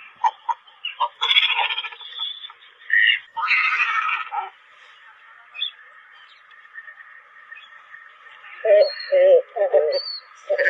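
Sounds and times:
cormorants croaking and squawking: 0:00.0 - 0:04.6, 0:06.8 - 0:10.6.

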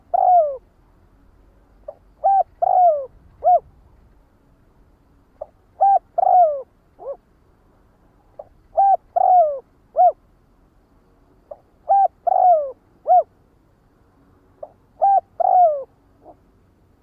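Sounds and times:
spotted dove cooing: 0:00.0 - 0:00.7, 0:01.9 - 0:03.7, 0:05.4 - 0:07.2, 0:08.4 - 0:10.2, 0:11.5 - 0:13.4, 0:14.6 - 0:16.4.

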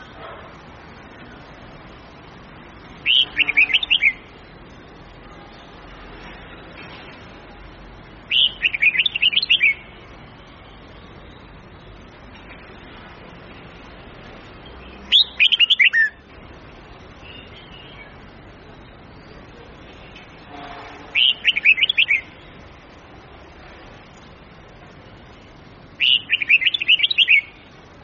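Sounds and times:
low hiss: 0:00.0 - 0:28.0
red-whiskered bulbul singing: 0:02.5 - 0:05.8, 0:08.2 - 0:12.9, 0:13.6 - 0:22.9, 0:25.3 - 0:27.9.

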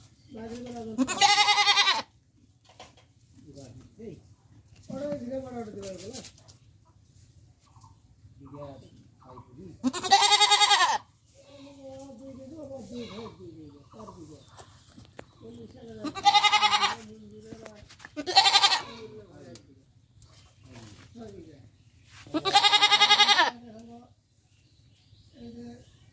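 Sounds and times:
goat bleating: 0:00.9 - 0:02.2, 0:09.8 - 0:11.9, 0:12.8 - 0:13.4, 0:16.0 - 0:17.1, 0:18.1 - 0:19.2, 0:22.3 - 0:23.6.

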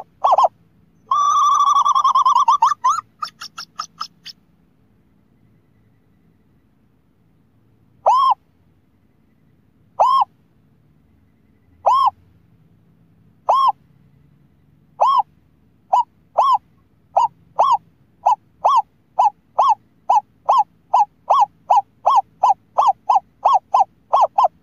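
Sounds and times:
scops owl hooting: 0:00.0 - 0:04.4, 0:08.0 - 0:08.4, 0:09.9 - 0:10.4, 0:11.4 - 0:12.2, 0:13.4 - 0:13.8, 0:15.0 - 0:24.6.

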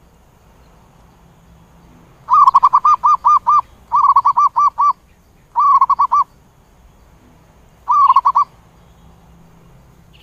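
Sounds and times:
zebra dove cooing: 0:02.2 - 0:06.3, 0:07.8 - 0:08.5.

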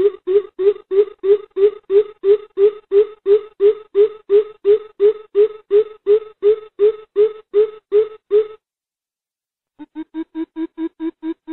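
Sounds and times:
greater coucal booming hoots: 0:00.0 - 0:08.6.

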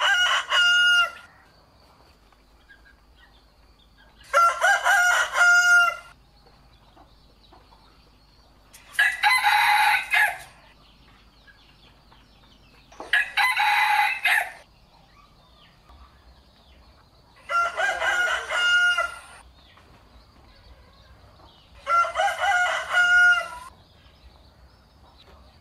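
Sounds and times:
rooster crowing: 0:00.0 - 0:01.3, 0:04.2 - 0:06.2, 0:09.0 - 0:10.6, 0:13.1 - 0:14.6, 0:17.4 - 0:19.4, 0:21.8 - 0:23.7.

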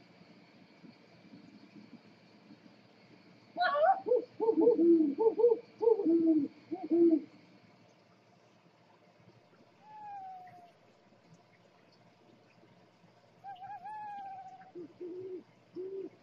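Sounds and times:
owl hooting: 0:03.6 - 0:07.3, 0:09.8 - 0:10.8, 0:13.4 - 0:16.2.

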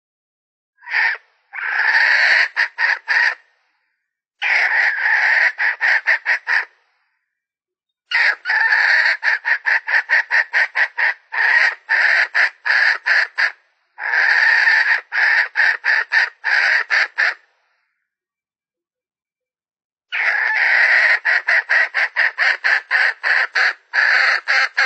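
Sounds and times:
Red junglefowl hen cackling: 0:00.8 - 0:03.5, 0:04.4 - 0:06.8, 0:08.1 - 0:17.5, 0:20.1 - 0:24.8.

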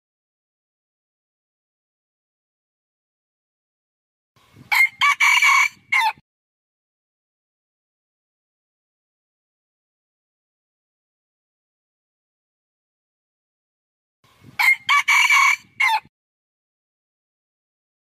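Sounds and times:
red junglefowl crowing: 0:04.7 - 0:06.2, 0:14.6 - 0:16.1.

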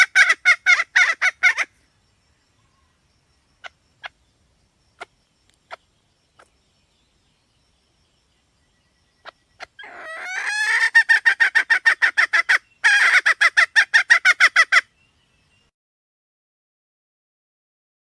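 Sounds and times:
Red junglefowl hen cackling: 0:00.0 - 0:01.8, 0:03.6 - 0:04.2, 0:09.2 - 0:14.9.

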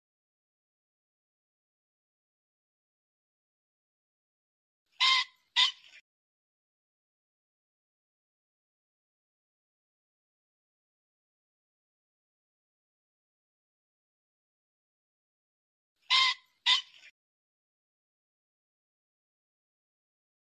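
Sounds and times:
pheasant squawking: 0:05.0 - 0:06.0, 0:16.1 - 0:17.1.

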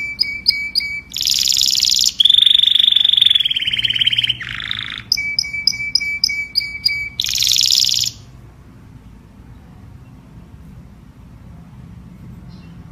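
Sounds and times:
domestic canary singing: 0:00.0 - 0:08.4.

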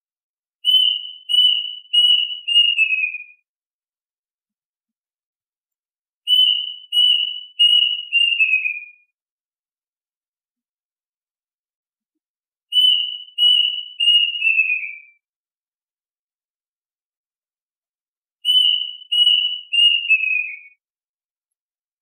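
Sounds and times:
duck whistled calls: 0:00.7 - 0:03.3, 0:06.3 - 0:08.9, 0:12.8 - 0:15.0, 0:18.5 - 0:20.7.

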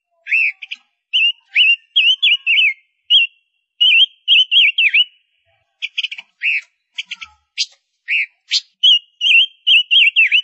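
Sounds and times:
Gouldian finch singing: 0:00.0 - 0:10.4.

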